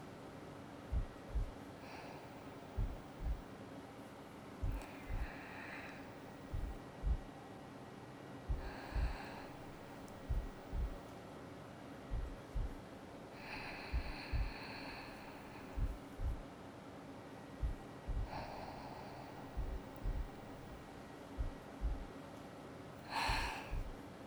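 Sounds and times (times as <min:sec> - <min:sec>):
heartbeat: 0:00.9 - 0:01.6, 0:02.7 - 0:03.5, 0:04.6 - 0:05.4, 0:06.4 - 0:07.3, 0:08.5 - 0:11.1, 0:12.1 - 0:12.8, 0:13.5 - 0:16.5, 0:17.6 - 0:22.2, 0:23.1 - 0:24.0.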